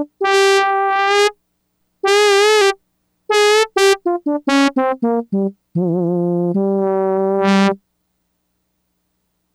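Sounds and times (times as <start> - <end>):
Yamaha DX100 synthesizer trumpet factory patch: 0.0 - 1.3, 2.0 - 7.8.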